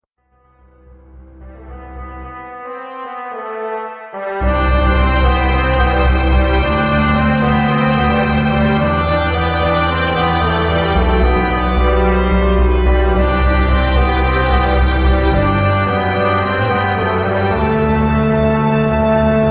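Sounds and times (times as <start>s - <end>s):
orchestra: 1.2s - 19.4s.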